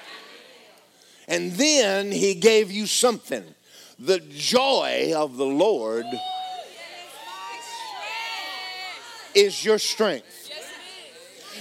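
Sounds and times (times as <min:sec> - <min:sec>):
speech: 0:01.3 - 0:06.4, 0:09.4 - 0:10.5
congregation shouting during a church worship service: 0:05.9 - 0:11.5.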